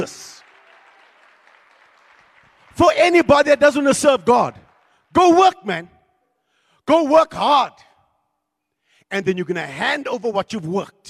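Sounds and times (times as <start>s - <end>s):
speech: 0.0s - 0.2s, 2.8s - 6.0s, 6.9s - 7.9s, 9.1s - 11.0s
audience clapping hands: 0.0s - 5.8s.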